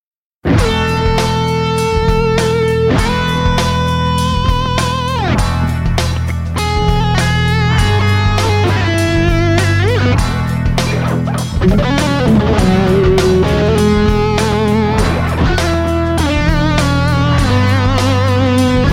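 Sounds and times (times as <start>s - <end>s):
seven major chords: 0.5s - 18.9s.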